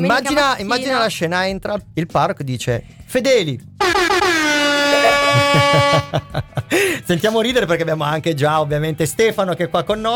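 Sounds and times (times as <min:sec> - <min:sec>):
speech: 0:00.0 - 0:04.4, 0:05.5 - 0:10.1
party horn blowing: 0:03.8 - 0:06.4
laughter: 0:04.8 - 0:07.3.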